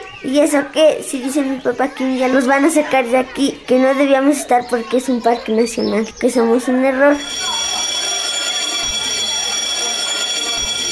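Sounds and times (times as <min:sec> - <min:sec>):
speech: 0:00.2 - 0:07.8
school bell ringing: 0:07.1 - 0:10.9.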